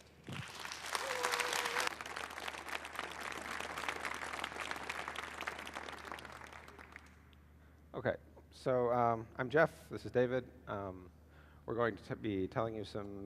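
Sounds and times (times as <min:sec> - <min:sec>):
audience applause: 0:00.2 - 0:07.2
speech: 0:08.0 - 0:13.2.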